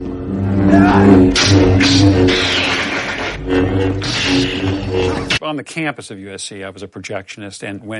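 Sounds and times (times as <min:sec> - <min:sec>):
lightsaber humming: 0:00.0 - 0:05.4.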